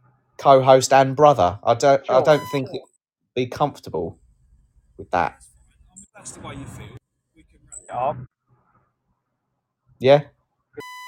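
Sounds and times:
speech: 0:00.4 - 0:04.2, 0:05.0 - 0:05.5, 0:06.2 - 0:07.0, 0:07.9 - 0:08.3, 0:10.0 - 0:10.9
electronic beeping: 0:02.1 - 0:02.9, 0:10.8 - 0:11.0.

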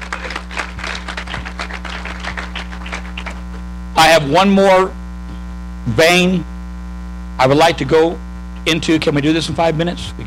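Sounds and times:
audience clapping: 0:00.0 - 0:03.7
speech: 0:04.0 - 0:05.0, 0:05.8 - 0:06.5, 0:07.4 - 0:10.2.

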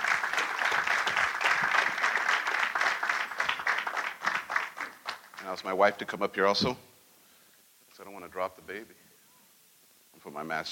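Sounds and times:
audience applauding: 0:00.0 - 0:05.6
speech: 0:05.5 - 0:06.9, 0:08.4 - 0:09.0, 0:10.2 - 0:10.7.

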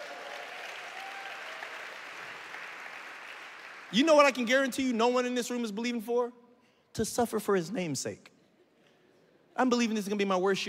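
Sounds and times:
church congregation applause at an Easter Sunday service: 0:00.0 - 0:05.0
speech: 0:03.9 - 0:06.4, 0:07.0 - 0:08.3, 0:09.6 - 0:10.6.

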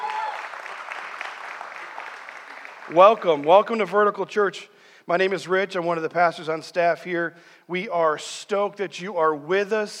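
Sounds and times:
church congregation applauding its guests: 0:00.0 - 0:03.9
speech: 0:02.9 - 0:09.9.

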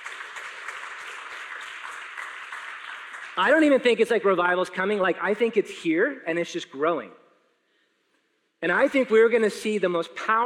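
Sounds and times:
audience applause: 0:00.0 - 0:03.7
speech: 0:03.4 - 0:07.2, 0:08.6 - 0:10.4.

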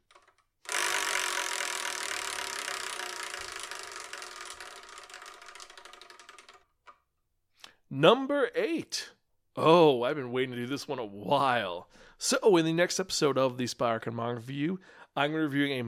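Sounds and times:
wheel spun to pick a number: 0:00.0 - 0:07.0
speech: 0:07.9 - 0:15.8.

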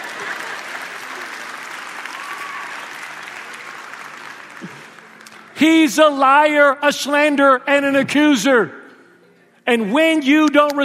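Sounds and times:
audience applause: 0:00.0 - 0:05.6
speech: 0:05.6 - 0:08.8, 0:09.7 - 0:10.8.

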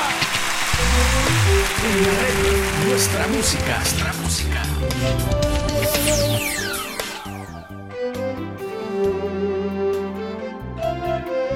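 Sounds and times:
crowd applause: 0:00.0 - 0:04.8
sustained musical tones: 0:00.7 - 0:11.5
speech: 0:01.8 - 0:05.5.

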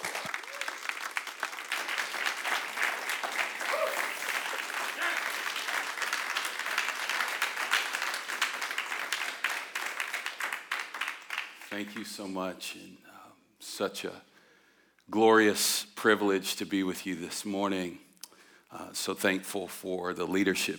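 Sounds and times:
church congregation applauding a guest speaker: 0:00.0 - 0:12.3
speech: 0:11.8 - 0:13.0, 0:13.8 - 0:14.3, 0:15.1 - 0:18.0, 0:18.7 - 0:20.7.

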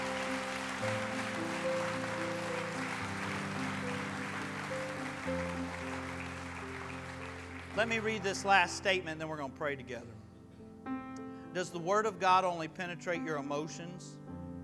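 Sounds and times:
audience hand clapping: 0:00.0 - 0:08.9
sustained organ-like chords: 0:00.0 - 0:14.5
speech: 0:07.8 - 0:10.2, 0:11.6 - 0:14.2.

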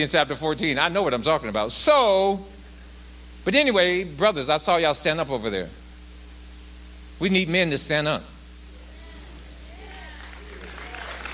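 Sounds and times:
speech: 0:00.0 - 0:02.6, 0:03.4 - 0:05.8, 0:07.2 - 0:08.3
audience applauding: 0:09.8 - 0:11.3.

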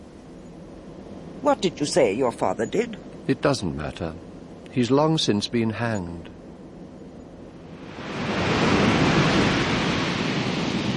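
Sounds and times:
storm wind: 0:00.0 - 0:10.9
speech: 0:01.4 - 0:06.3
storm surf: 0:07.8 - 0:10.9.

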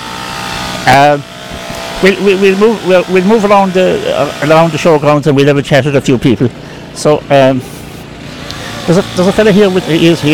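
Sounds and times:
chainsaw starting with a short buzzing rev: 0:00.0 - 0:04.9, 0:08.3 - 0:10.3
speech: 0:00.8 - 0:01.3, 0:02.0 - 0:07.7, 0:08.9 - 0:10.3.

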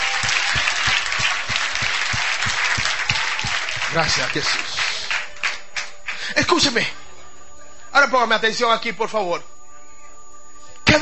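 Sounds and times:
audience applause: 0:00.0 - 0:06.3
speech: 0:03.9 - 0:04.8, 0:06.4 - 0:07.0, 0:08.0 - 0:09.5.

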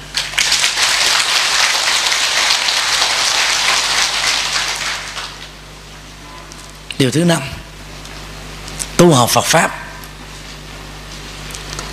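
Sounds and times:
large audience applause: 0:00.3 - 0:05.5
speech: 0:07.0 - 0:07.6, 0:09.0 - 0:09.8.

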